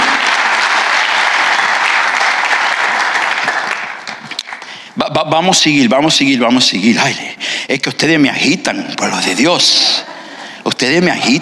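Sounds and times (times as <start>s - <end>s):
audience applauding: 0.0s - 4.8s
speech: 5.2s - 11.4s.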